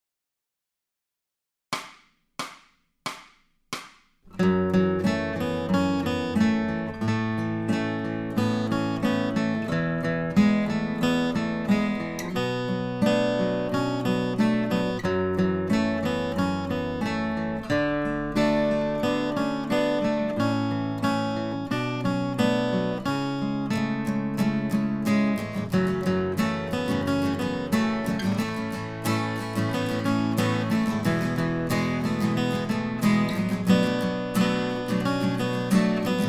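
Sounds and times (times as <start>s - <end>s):
acoustic guitar accompaniment: 4.2s - 36.2s.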